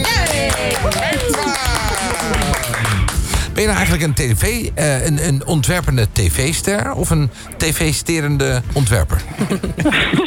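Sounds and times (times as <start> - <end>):
audience applause: 0.0 - 3.5
speech: 0.7 - 1.4, 3.6 - 10.2.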